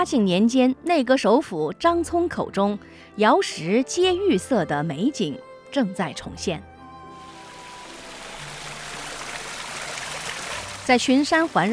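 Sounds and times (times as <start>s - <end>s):
speech: 0.0s - 6.7s, 10.9s - 11.7s
mountain stream flowing through a valley: 7.2s - 11.7s.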